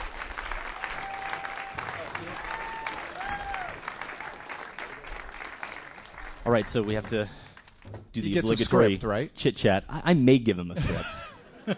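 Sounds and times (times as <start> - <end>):
applause: 0.0 - 7.8
speech: 6.5 - 7.4, 8.2 - 11.7
laughter: 10.8 - 11.7.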